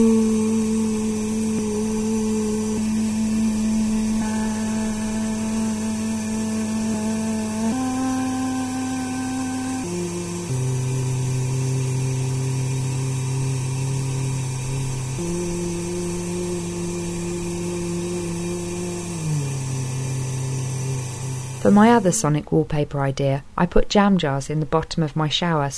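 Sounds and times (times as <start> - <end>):
bathroom exhaust fan droning: 0.0 - 22.4
speech: 21.7 - 25.7.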